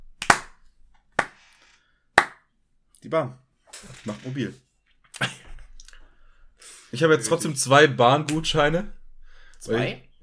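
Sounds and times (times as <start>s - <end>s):
hand claps: 0.1s - 0.6s, 1.2s - 1.5s, 2.2s - 2.4s
speech: 3.0s - 4.6s, 6.9s - 9.0s, 9.6s - 10.1s.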